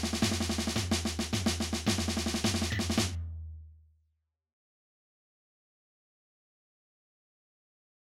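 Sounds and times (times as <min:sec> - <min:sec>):
drums on parade: 0:00.0 - 0:03.3.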